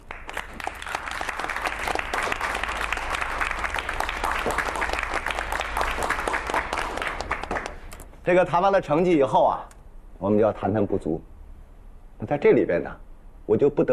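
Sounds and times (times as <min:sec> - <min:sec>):
warm applause: 0:00.0 - 0:08.0
speech: 0:08.3 - 0:11.3, 0:12.2 - 0:13.9.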